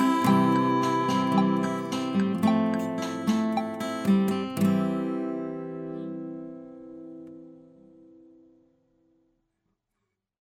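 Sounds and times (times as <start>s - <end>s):
Casio VL-Tone mini keyboard: 0.0s - 5.1s
guitar: 0.0s - 9.3s.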